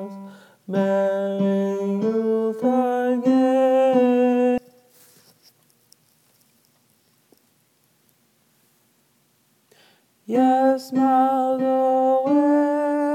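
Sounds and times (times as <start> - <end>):
tenor singing: 0.0 - 4.8, 10.2 - 13.1.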